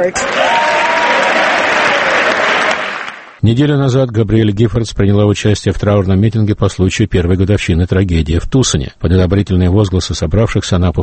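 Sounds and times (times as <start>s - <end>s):
speech: 0.0s - 0.6s, 3.4s - 11.0s
large crowd applause for Gabby Giffords in the House of Representatives: 0.0s - 3.4s.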